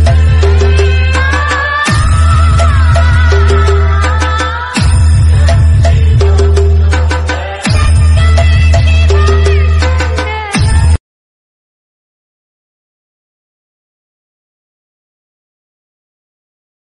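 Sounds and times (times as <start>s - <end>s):
DJ remix ringtone: 0.0s - 11.0s.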